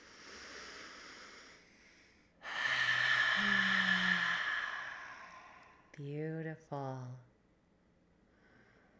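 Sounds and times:
deep breath in through the nose and out through the mouth: 0:00.0 - 0:06.0
speech: 0:06.0 - 0:07.3.

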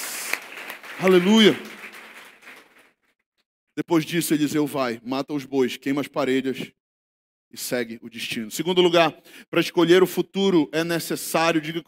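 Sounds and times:
crowd applause: 0:00.0 - 0:03.0
speech: 0:01.0 - 0:01.7, 0:03.8 - 0:06.8, 0:07.5 - 0:11.8.

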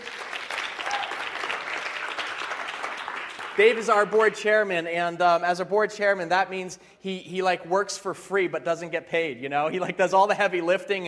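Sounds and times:
round of applause: 0:00.0 - 0:04.2
speech: 0:03.6 - 0:11.0.

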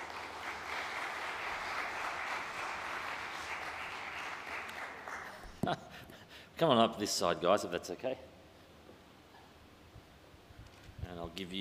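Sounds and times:
audience applause welcoming two people to the stage: 0:00.0 - 0:05.6
speech: 0:05.6 - 0:08.3, 0:11.4 - 0:11.6.

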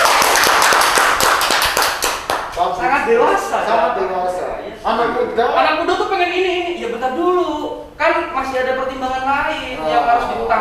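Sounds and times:
people clapping: 0:00.0 - 0:02.8
speech: 0:03.1 - 0:10.5.

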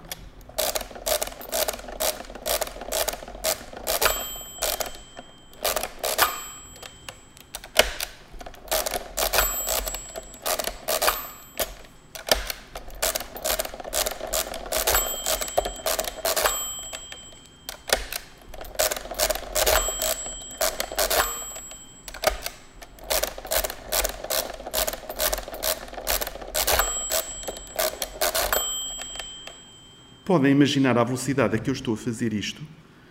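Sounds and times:
mechanical calculator crank turning with rattling clicks: 0:00.0 - 0:30.2
speech: 0:30.3 - 0:32.8.

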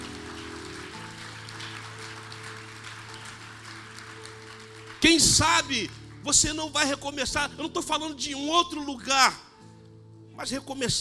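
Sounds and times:
audience applause: 0:00.0 - 0:05.6
sustained keyboard chords: 0:00.0 - 0:10.9
speech: 0:05.0 - 0:09.4, 0:10.4 - 0:10.9.

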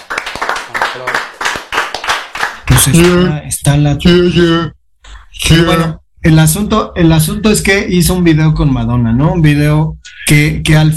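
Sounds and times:
audience applause: 0:00.0 - 0:02.9
speech: 0:01.0 - 0:01.3, 0:02.8 - 0:04.8, 0:05.4 - 0:10.9.

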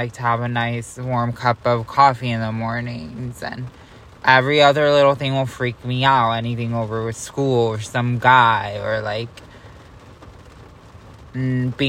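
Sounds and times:
speech: 0:00.0 - 0:09.5, 0:11.4 - 0:11.8
heavy rain: 0:00.0 - 0:11.8.

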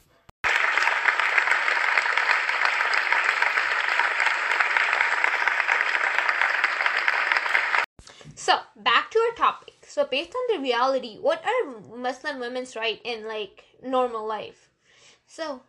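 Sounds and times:
audience applause: 0:00.4 - 0:07.9
speech: 0:08.5 - 0:14.7, 0:15.3 - 0:15.6.

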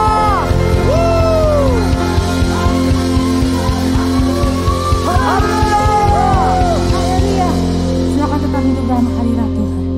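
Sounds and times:
audience shouting hallelujah: 0:00.0 - 0:07.7
steady pulsing rhythm: 0:00.0 - 0:09.8.

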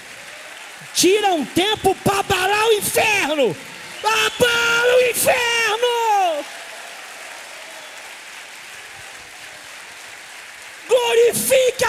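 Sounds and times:
large group applauding: 0:00.0 - 0:11.8
speech: 0:00.8 - 0:06.0, 0:11.0 - 0:11.8.

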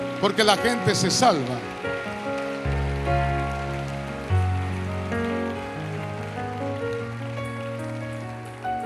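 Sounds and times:
audience applause: 0:00.0 - 0:08.8
speech: 0:00.2 - 0:01.8.

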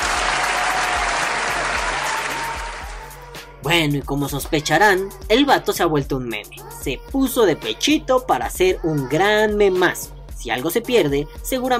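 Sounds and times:
audience applause: 0:00.0 - 0:03.1
speech: 0:03.7 - 0:11.7.

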